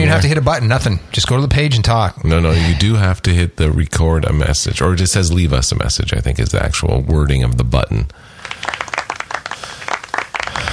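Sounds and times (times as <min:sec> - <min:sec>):
speech: 0:00.1 - 0:08.8
studio audience clapping politely: 0:08.4 - 0:10.7.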